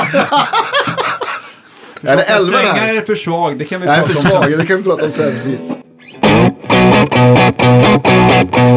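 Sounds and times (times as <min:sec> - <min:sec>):
laughter: 0:00.0 - 0:05.8
speech: 0:00.1 - 0:00.7, 0:02.0 - 0:05.9
electric guitar strummed chords through reverb pedal: 0:06.0 - 0:08.7.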